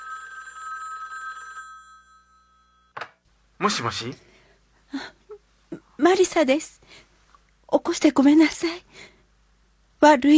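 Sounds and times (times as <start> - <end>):
telephone ringing: 0.0 - 3.0
telephone receiver clunk: 3.0 - 3.2
speech: 3.6 - 4.3, 6.1 - 7.0, 7.7 - 9.1, 10.0 - 10.3.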